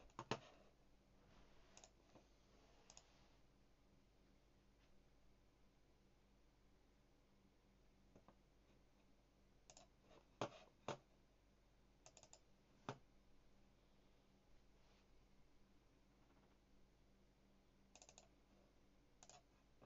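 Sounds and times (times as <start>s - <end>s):
low steady hum: 0.0s - 19.8s
typing on a HyperX Alloy FPS mechanical keyboard with Cherry MX Blue keys: 18.0s - 18.3s.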